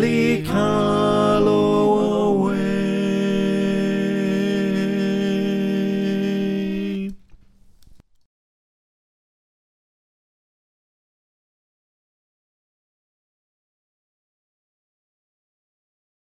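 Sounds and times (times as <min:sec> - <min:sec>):
choir singing: 0:00.0 - 0:07.2
tenor voice: 0:00.0 - 0:07.2.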